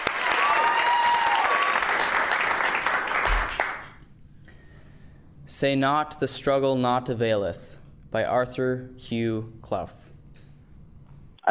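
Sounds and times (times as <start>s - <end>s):
audience applause: 0.0s - 4.0s
speech: 5.6s - 10.0s.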